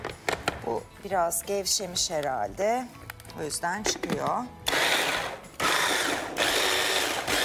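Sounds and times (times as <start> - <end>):
speech: 0.7 - 4.9
food processor grinding boiled chickpeas: 4.7 - 7.4.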